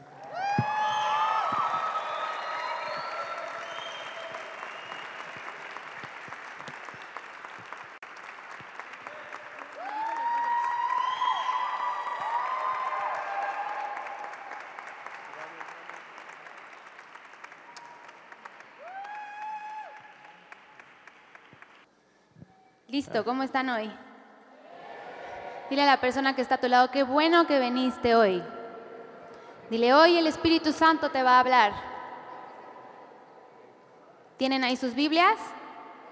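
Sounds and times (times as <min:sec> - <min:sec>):
audience applause: 0:00.1 - 0:21.9
speech: 0:22.9 - 0:24.0, 0:25.7 - 0:28.6, 0:29.7 - 0:31.9, 0:34.4 - 0:35.6.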